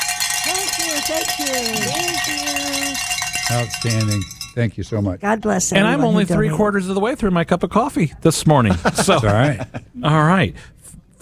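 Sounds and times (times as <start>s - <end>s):
bells being rung: 0.0s - 4.7s
speech: 1.0s - 11.2s
laughter: 1.4s - 3.0s, 8.6s - 10.0s.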